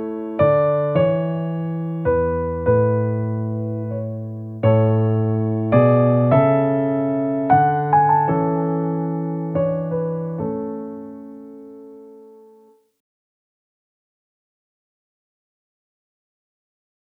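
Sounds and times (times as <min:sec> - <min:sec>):
piano sonata: 0:00.0 - 0:12.8.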